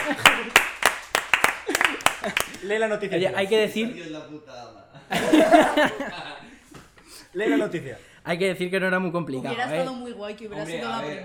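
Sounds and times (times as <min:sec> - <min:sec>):
applause: 0:00.0 - 0:02.7
laughter: 0:00.0 - 0:02.9, 0:04.9 - 0:08.0
speech: 0:02.2 - 0:06.4, 0:07.4 - 0:11.2.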